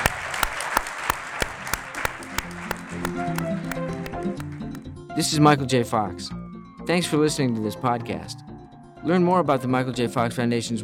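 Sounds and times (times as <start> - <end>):
crowd applause: 0.0 - 4.8
speech: 5.2 - 10.8.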